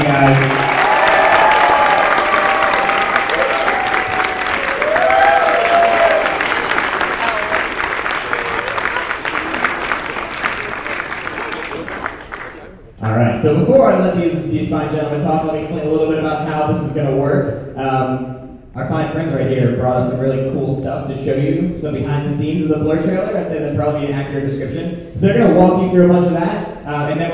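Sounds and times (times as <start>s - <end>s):
audience applause: 0.0s - 12.8s
speech: 0.1s - 0.7s, 13.4s - 18.3s, 19.2s - 27.3s.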